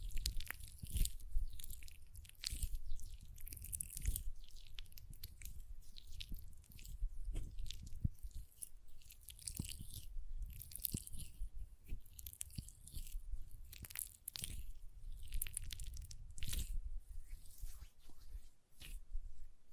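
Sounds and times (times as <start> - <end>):
hands rubbing lotion, crackly squishy: 0.0 - 19.1.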